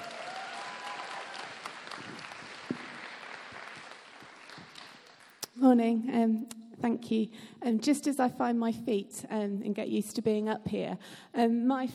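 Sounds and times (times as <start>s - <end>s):
round of applause: 0.0s - 5.4s
speech: 5.6s - 11.9s.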